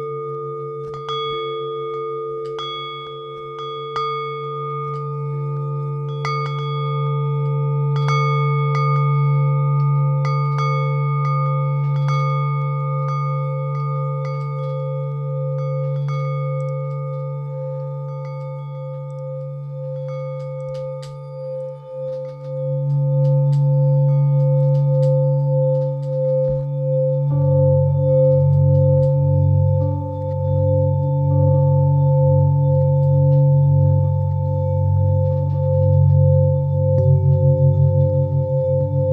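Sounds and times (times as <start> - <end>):
bells: 0.0 - 39.1
drones: 20.0 - 39.1.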